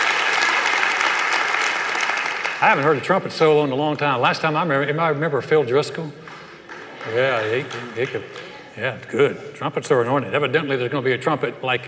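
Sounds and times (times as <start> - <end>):
crowd applause: 0.0 - 3.6, 6.2 - 8.7
speech: 2.6 - 6.2, 7.0 - 11.8.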